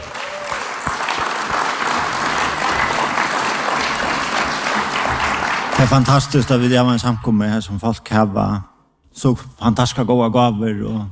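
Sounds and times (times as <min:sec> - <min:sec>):
audience applause: 0:00.0 - 0:06.6
speech: 0:05.8 - 0:11.1.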